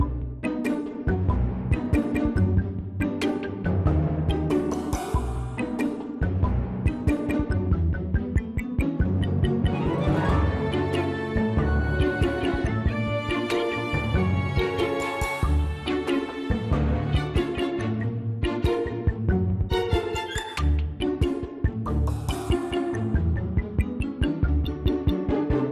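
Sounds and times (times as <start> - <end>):
combat preparation music loop: 0.0 - 25.6.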